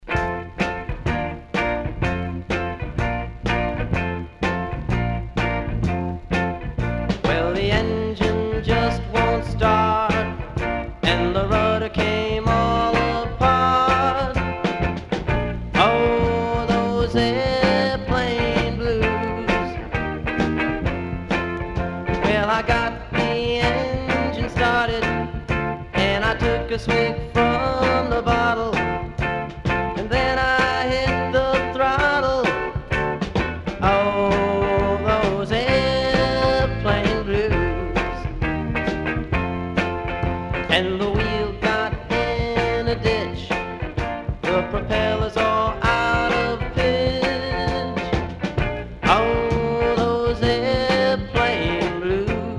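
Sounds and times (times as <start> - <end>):
blues music: 0.0 - 52.5.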